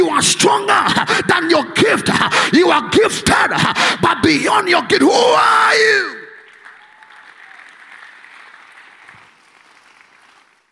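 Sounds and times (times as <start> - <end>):
speech: 0.2 - 6.2
audience clapping hands: 6.4 - 10.7.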